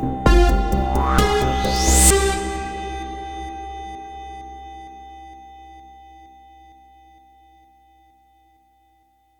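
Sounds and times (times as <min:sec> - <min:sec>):
high pling tones: 0:00.2 - 0:03.1.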